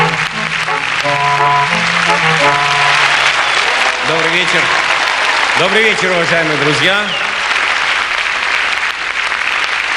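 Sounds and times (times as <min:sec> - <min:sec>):
audience applause as a speaker comes on stage: 0:00.0 - 0:09.9
speech: 0:04.4 - 0:04.9, 0:05.6 - 0:07.2.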